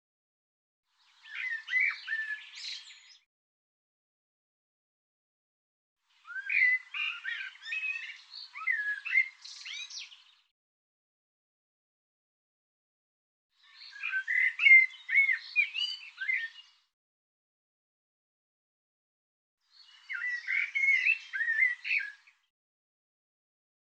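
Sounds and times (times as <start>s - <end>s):
bird song: 0.9s - 3.3s, 6.0s - 10.5s, 13.5s - 17.0s, 19.6s - 22.5s.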